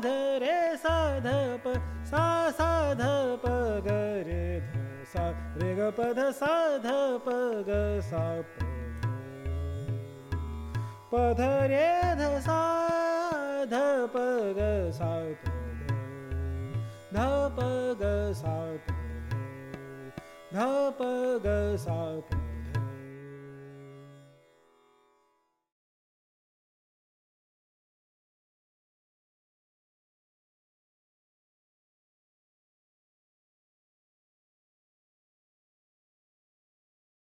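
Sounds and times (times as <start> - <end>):
person singing raga: 0.0 - 24.4.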